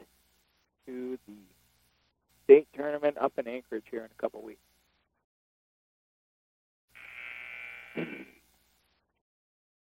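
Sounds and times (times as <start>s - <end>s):
speech: 0.9s - 1.6s, 2.5s - 4.7s
basketball game buzzer: 6.9s - 8.3s.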